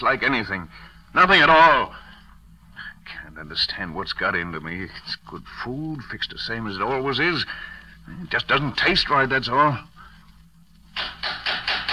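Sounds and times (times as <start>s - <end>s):
speech: 0.0s - 2.0s, 3.4s - 9.9s
knocking on a door: 11.0s - 11.9s.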